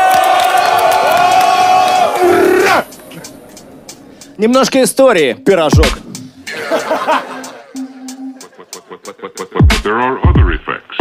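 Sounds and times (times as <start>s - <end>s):
crowd cheering and shouting: 0.0s - 2.9s
speech: 4.4s - 6.0s, 9.9s - 10.9s
laughter: 6.4s - 10.1s.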